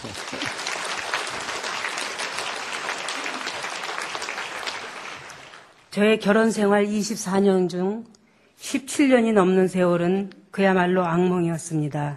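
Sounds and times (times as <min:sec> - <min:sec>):
audience applause: 0:00.0 - 0:05.8
speech: 0:06.0 - 0:12.1.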